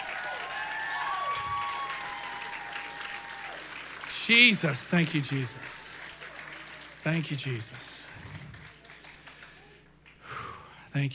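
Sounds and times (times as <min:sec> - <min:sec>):
audience applause: 0:00.0 - 0:10.3
speech: 0:04.3 - 0:06.0, 0:07.0 - 0:08.2, 0:10.9 - 0:11.1.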